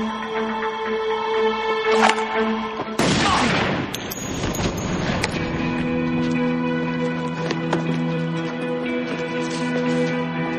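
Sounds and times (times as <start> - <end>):
steady tonal film background: 0.0 - 3.0, 3.9 - 10.5
gunshot in a film scene as a woman shoots a man: 3.0 - 5.1.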